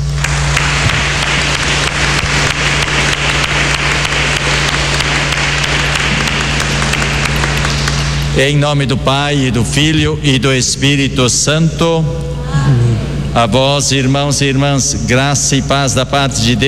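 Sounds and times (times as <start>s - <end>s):
round of applause: 0.0s - 8.4s
speech: 8.4s - 16.6s.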